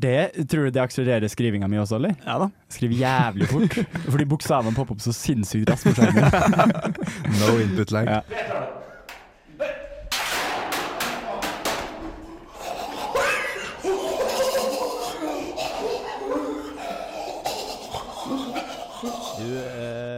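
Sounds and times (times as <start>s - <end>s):
speech: 0.0s - 8.8s, 19.4s - 20.1s
laughter: 2.9s - 4.9s, 5.6s - 8.2s, 11.3s - 20.1s
things being smashed and thrown on floor: 10.1s - 12.0s.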